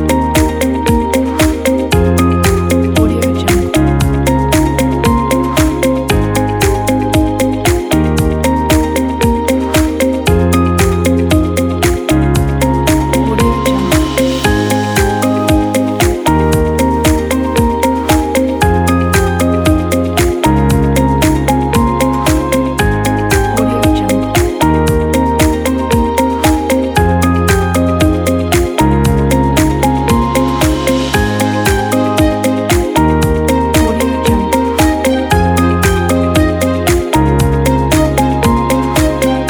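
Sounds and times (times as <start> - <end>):
uplifting corporate motivational music: 0.0 - 39.4.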